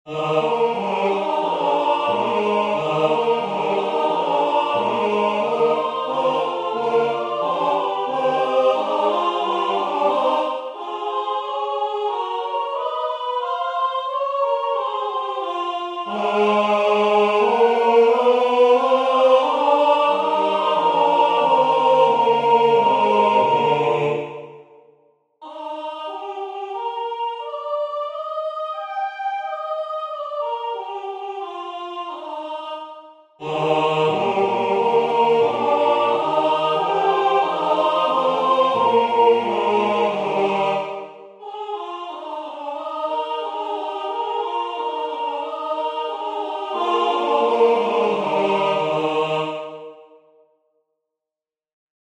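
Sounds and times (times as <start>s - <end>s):
tenor singing: 0.1s - 24.6s, 25.4s - 49.9s.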